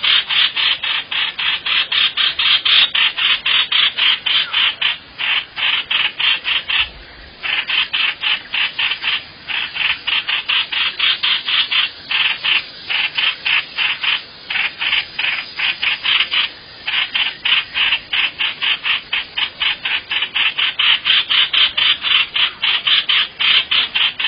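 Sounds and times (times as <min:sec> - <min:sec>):
bird rasping calls: 0:00.0 - 0:24.2.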